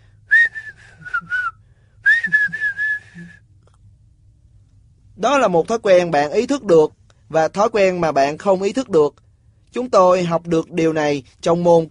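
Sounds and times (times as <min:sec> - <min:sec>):
person whistling: 0:00.3 - 0:03.4
speech: 0:05.2 - 0:11.8.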